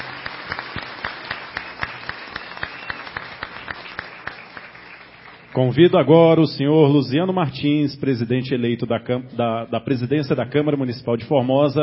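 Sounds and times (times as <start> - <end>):
audience applause: 0.0 - 5.6
speech: 5.6 - 11.8.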